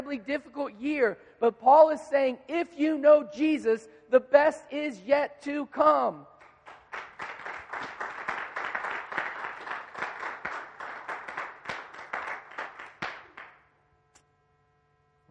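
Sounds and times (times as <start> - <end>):
speech: 0.1 - 6.3
audience clapping: 6.4 - 13.7.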